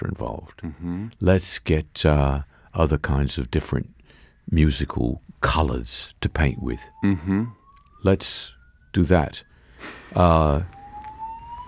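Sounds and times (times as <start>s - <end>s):
speech: 0.0s - 10.8s
fire alarm: 6.4s - 11.6s.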